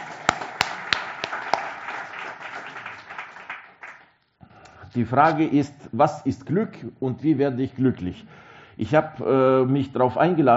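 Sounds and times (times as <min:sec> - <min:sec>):
audience clapping: 0:00.0 - 0:04.3
speech: 0:05.0 - 0:10.5.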